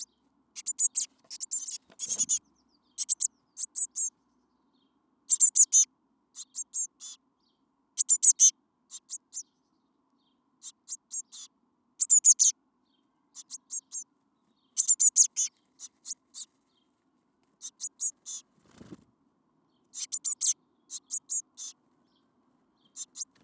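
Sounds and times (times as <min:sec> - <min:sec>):
Eurasian blue tit calling: 0:00.0 - 0:04.1, 0:05.3 - 0:07.2, 0:08.0 - 0:09.5, 0:10.6 - 0:12.5, 0:13.4 - 0:14.1, 0:14.8 - 0:16.5, 0:17.6 - 0:18.8, 0:19.9 - 0:21.8, 0:22.8 - 0:23.4.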